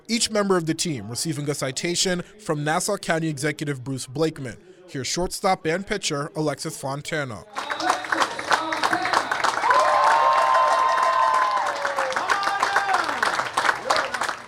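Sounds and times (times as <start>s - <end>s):
speech: 0.1s - 7.9s
crowd cheering: 7.5s - 14.4s.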